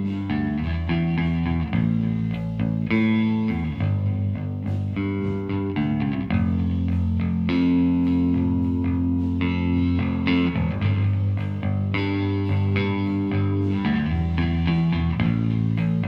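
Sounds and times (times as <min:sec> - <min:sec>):
bass through guitar amp recorded mono with M160 microphone: 0:00.0 - 0:16.0.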